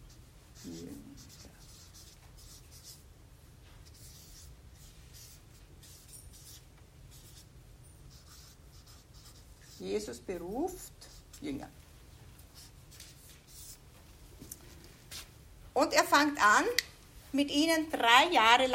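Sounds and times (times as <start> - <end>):
writing on a board: 0.1 - 3.0, 3.8 - 7.5, 8.1 - 9.9
speech: 9.8 - 11.8, 15.8 - 18.7.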